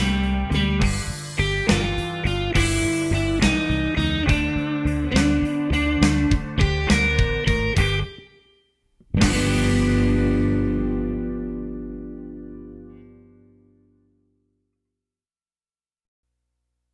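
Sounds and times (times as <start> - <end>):
double stop stomp music at slow tempo: 0.0 - 8.1, 9.0 - 10.9.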